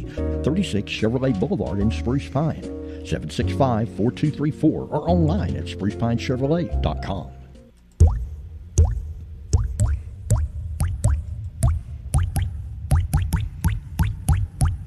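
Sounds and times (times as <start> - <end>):
speech: 0.1 - 7.4
water dripping from a plumbing leak: 8.0 - 14.8.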